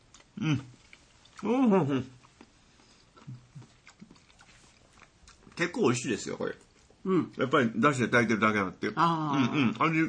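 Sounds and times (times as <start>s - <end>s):
person chewing food simmered in dashi: 0.0s - 1.5s, 2.2s - 5.6s
speech: 0.4s - 0.8s, 1.4s - 2.2s, 5.6s - 10.0s.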